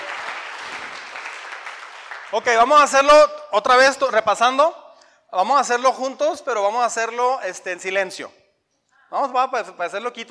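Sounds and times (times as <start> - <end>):
audience applause: 0.0 - 2.5
speech: 2.3 - 8.4, 9.1 - 10.2.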